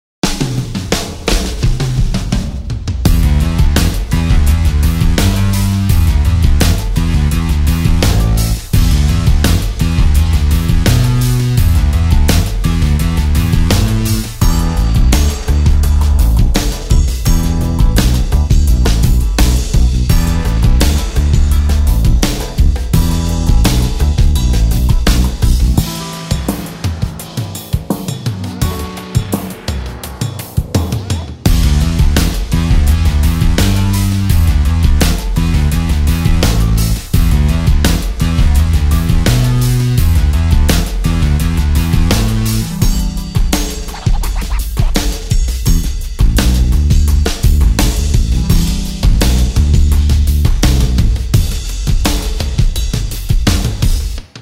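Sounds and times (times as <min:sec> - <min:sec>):
dub style music: 0:00.2 - 0:54.4.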